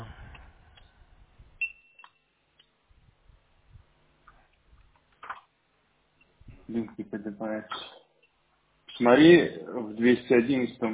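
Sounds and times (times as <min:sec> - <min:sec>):
electronic device beeping: 0:01.6 - 0:02.7
speech: 0:06.7 - 0:08.0, 0:09.0 - 0:10.9.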